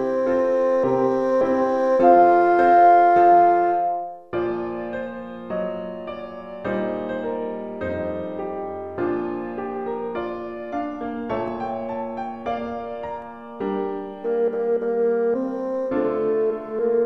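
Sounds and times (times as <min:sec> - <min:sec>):
bassoon: 0:00.0 - 0:04.2, 0:13.9 - 0:17.0
piano: 0:00.0 - 0:17.0.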